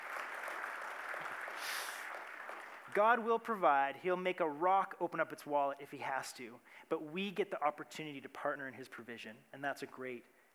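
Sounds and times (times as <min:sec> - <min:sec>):
audience clapping: 0:00.0 - 0:03.3
speech: 0:02.9 - 0:10.4.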